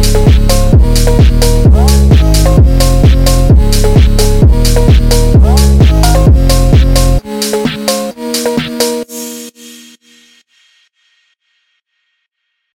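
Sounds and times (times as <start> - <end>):
phonk music: 0.0 - 10.1.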